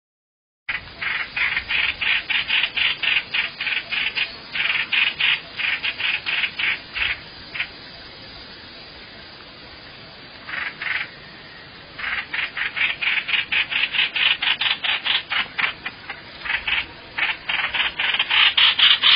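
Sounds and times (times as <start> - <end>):
bird rasping calls: 0.7 - 7.8, 10.4 - 11.2, 12.0 - 19.1.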